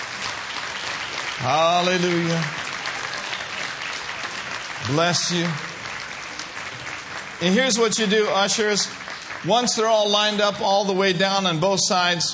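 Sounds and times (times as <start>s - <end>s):
audience applauding: 0.0s - 11.6s
speech: 1.4s - 2.6s, 4.8s - 5.8s, 7.4s - 12.3s.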